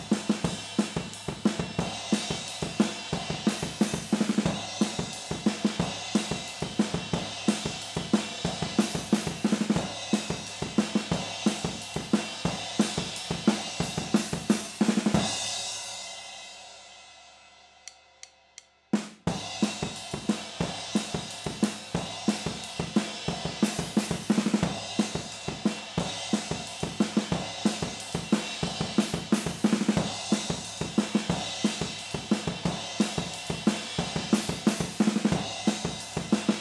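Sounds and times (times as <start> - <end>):
drums recorded overhead in stereo: 0.0 - 36.5.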